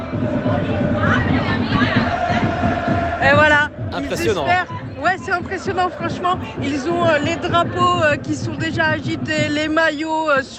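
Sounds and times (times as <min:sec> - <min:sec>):
speech: 0:00.2 - 0:03.4, 0:04.0 - 0:10.5
laughter: 0:03.9 - 0:07.2
rugby supporters shouting in the street in Bilbao: 0:04.0 - 0:04.8.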